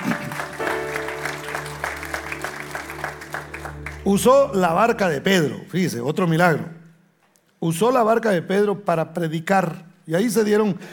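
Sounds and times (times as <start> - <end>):
audience clapping loudly: 0.0 - 5.2
speech: 4.1 - 6.8, 7.6 - 10.9.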